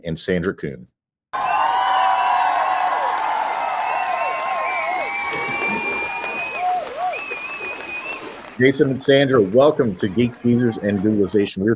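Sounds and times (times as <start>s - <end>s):
speech: 0.0s - 1.5s, 8.6s - 11.7s
crowd cheering: 1.3s - 11.7s
applause at a workplace mental-health talk: 1.4s - 9.0s
shrill whoops and whistles: 3.6s - 8.4s.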